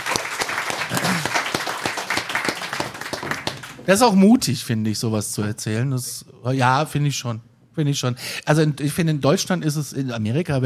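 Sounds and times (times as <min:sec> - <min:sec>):
audience applause: 0:00.0 - 0:04.1
speech: 0:03.9 - 0:10.6.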